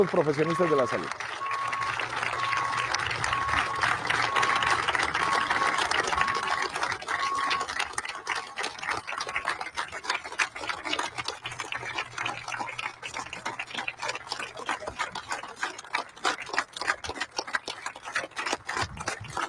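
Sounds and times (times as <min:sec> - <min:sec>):
speech: 0:00.0 - 0:01.4
sustained crowd applause: 0:00.0 - 0:19.4
faint intermittent high beeping tone: 0:00.4 - 0:07.7.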